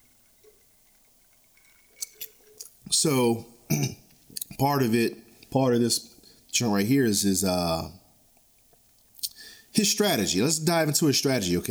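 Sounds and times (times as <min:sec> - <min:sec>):
person sipping a drink: 0:00.1 - 0:04.6, 0:08.4 - 0:09.7
speech: 0:02.9 - 0:04.0, 0:04.6 - 0:08.0, 0:09.8 - 0:11.6.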